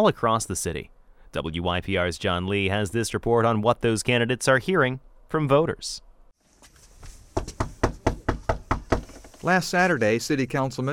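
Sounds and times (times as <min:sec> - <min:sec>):
speech: 0:00.0 - 0:06.1, 0:09.4 - 0:10.9
knocking on a door: 0:07.4 - 0:09.2.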